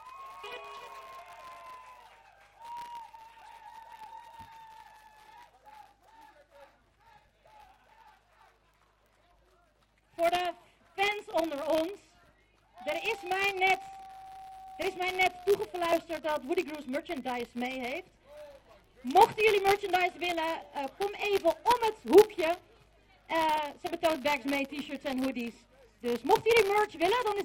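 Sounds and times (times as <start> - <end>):
audience applause: 0.0 - 9.9, 12.8 - 16.0
speech: 0.4 - 1.1, 10.2 - 10.5, 15.8 - 18.2, 19.0 - 22.7, 23.3 - 27.4.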